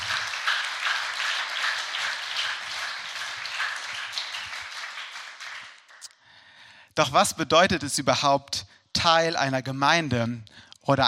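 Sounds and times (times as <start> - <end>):
audience applause: 0.0 - 6.0
speech: 7.0 - 11.0.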